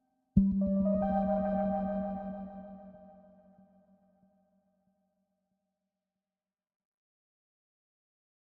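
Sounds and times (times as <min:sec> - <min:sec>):
synths: 0:00.4 - 0:03.4.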